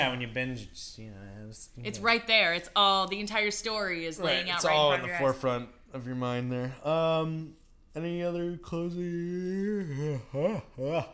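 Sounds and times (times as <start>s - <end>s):
speech: 0.0s - 11.1s
person yawning: 9.4s - 11.1s.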